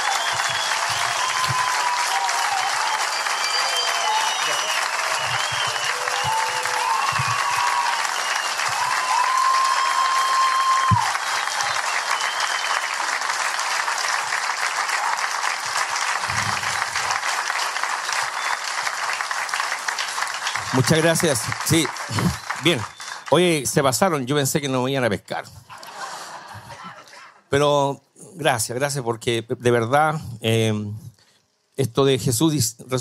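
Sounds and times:
audience applause: 0.0s - 24.1s
speech: 20.9s - 25.6s, 27.5s - 31.0s, 31.8s - 33.0s
laughter: 22.0s - 22.6s, 25.7s - 27.4s.

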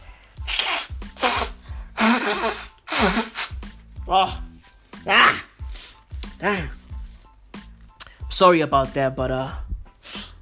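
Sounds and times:
person blowing nose: 0.0s - 4.0s, 5.2s - 6.4s, 9.9s - 10.4s
speech: 4.1s - 5.4s, 6.4s - 6.7s, 8.4s - 9.6s.

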